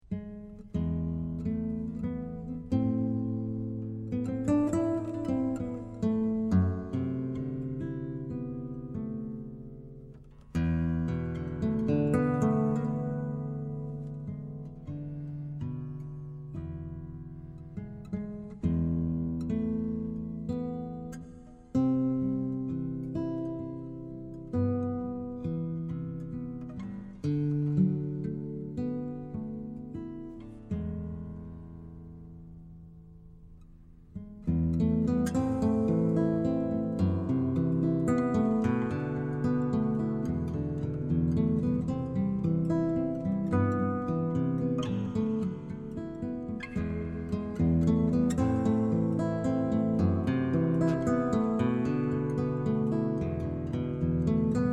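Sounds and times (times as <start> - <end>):
nylon string guitar: 0.0 - 54.7.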